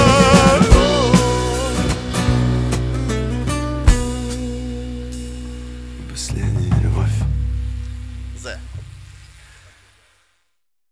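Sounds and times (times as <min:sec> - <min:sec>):
live acoustic music: 0:00.0 - 0:08.4.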